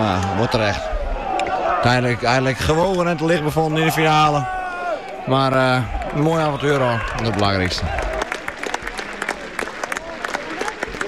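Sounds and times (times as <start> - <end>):
speech: 0.0 - 0.9, 1.8 - 4.6, 5.2 - 8.0
football supporters applauding: 2.6 - 11.0.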